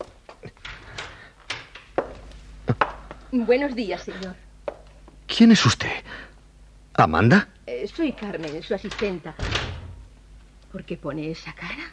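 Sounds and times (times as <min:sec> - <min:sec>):
low hum: 0:00.0 - 0:11.9
door opening: 0:00.4 - 0:02.3, 0:08.0 - 0:10.2
speech: 0:03.3 - 0:04.4, 0:05.4 - 0:06.1, 0:07.0 - 0:09.6, 0:10.7 - 0:11.9.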